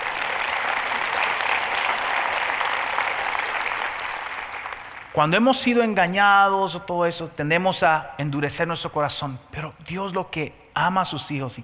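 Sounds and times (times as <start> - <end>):
audience applause: 0.0 - 5.3
speech: 5.2 - 11.6.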